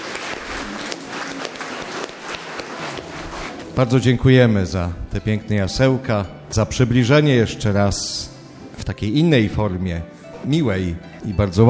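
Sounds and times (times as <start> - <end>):
children clapping: 0.0 - 3.1
speech: 3.8 - 11.6.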